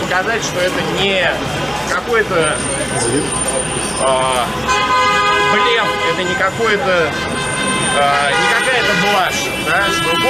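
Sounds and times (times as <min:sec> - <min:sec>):
city traffic roar: 0:00.0 - 0:10.2
speech: 0:00.2 - 0:10.2
car horns honking in city traffic: 0:02.5 - 0:10.2.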